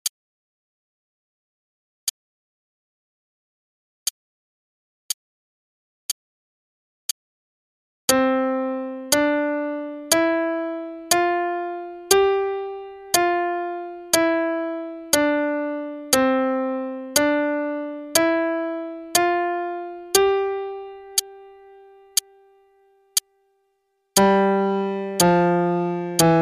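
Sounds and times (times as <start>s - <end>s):
C five-note scale warm-up: 8.1s - 22.1s, 24.2s - 26.3s.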